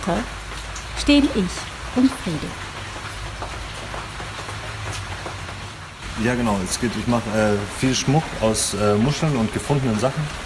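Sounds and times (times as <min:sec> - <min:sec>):
speech: 0:00.0 - 0:00.4, 0:01.0 - 0:02.7, 0:06.2 - 0:10.4
rain pattering on a tarpaulin: 0:00.0 - 0:10.4.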